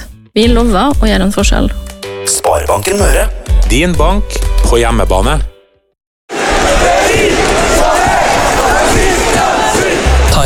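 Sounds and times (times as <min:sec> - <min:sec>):
speech: 0:00.4 - 0:05.5
local community crowd cheering: 0:06.3 - 0:10.4.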